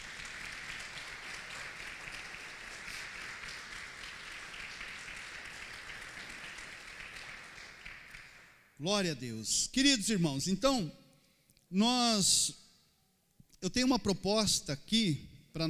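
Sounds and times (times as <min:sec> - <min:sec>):
audience applause: 0:00.0 - 0:08.6
speech: 0:08.8 - 0:11.0, 0:11.7 - 0:12.6, 0:13.6 - 0:15.6.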